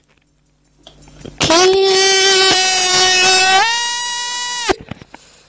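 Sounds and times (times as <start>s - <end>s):
person giving a primal scream: 1.6s - 4.8s.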